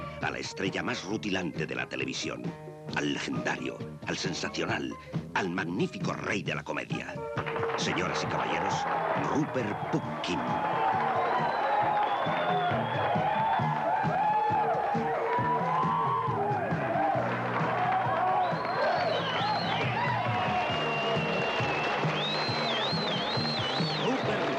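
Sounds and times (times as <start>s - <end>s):
speech: 0.2s - 10.8s
television audience applauding a comedian: 7.4s - 24.5s
excited cheers, whoops and shouting voices: 7.7s - 24.5s.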